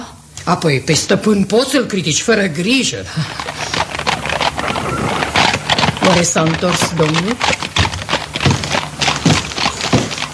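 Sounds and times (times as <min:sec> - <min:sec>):
speech: 0:00.5 - 0:03.6, 0:06.1 - 0:07.7
horse hooves clopping as a horse-drawn cart arrives at a manor courtyard: 0:03.2 - 0:10.3.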